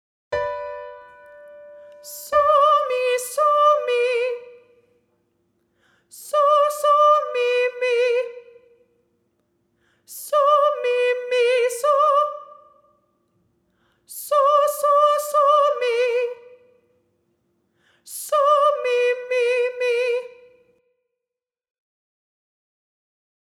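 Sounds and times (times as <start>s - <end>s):
solfa singing in G: 0.4s - 5.0s, 6.1s - 8.9s, 10.1s - 13.0s, 14.1s - 16.8s, 18.1s - 20.7s.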